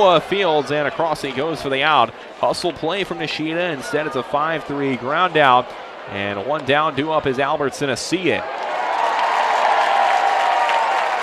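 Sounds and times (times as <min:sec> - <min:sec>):
speech: 0:00.0 - 0:08.6
crowd cheering at a baseball game: 0:00.0 - 0:11.2
crowd clapping at a baseball game: 0:08.4 - 0:11.2.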